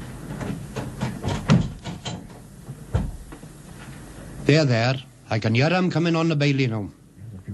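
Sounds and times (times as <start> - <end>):
wooden knocks and metal rattles: 0.5 - 3.4
door being shut and bolted: 0.8 - 3.3
speech: 4.5 - 7.0.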